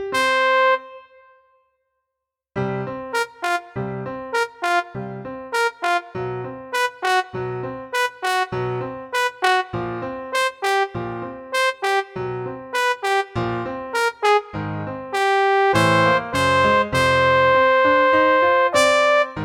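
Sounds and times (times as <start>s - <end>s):
solo trombone: 0.1s - 1.2s, 3.1s - 6.1s, 6.7s - 7.3s, 7.9s - 9.7s, 10.3s - 14.5s, 15.1s - 19.3s.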